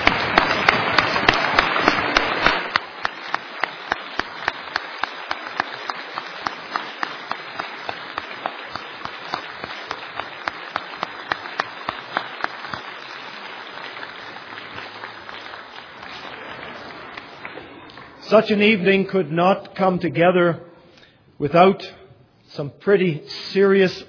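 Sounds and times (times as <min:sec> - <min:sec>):
audience applause for students: 0:00.0 - 0:18.5
speech: 0:18.3 - 0:20.7, 0:21.4 - 0:24.0.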